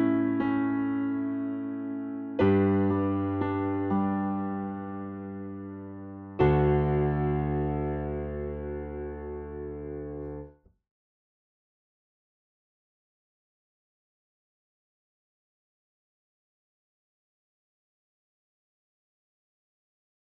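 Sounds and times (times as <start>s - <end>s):
piano part of a duo for flute and piano: 0.0s - 10.5s.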